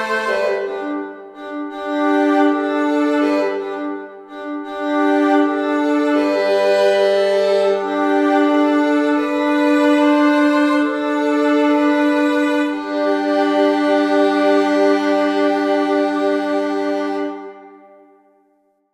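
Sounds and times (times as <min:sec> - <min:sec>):
violin playing: 0:00.0 - 0:18.1.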